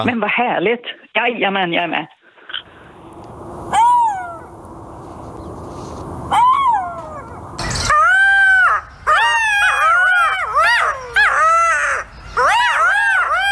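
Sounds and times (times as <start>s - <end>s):
speech: 0.0s - 2.2s
golden jackal chorus of high yips and screeching howls: 3.7s - 4.6s, 6.3s - 13.5s
golden jackal wails: 6.3s - 13.5s.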